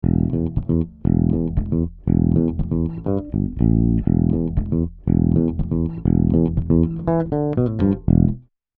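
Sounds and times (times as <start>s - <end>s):
electric bass through Summit Audio EQP 200B equalizer: 0.0s - 8.5s.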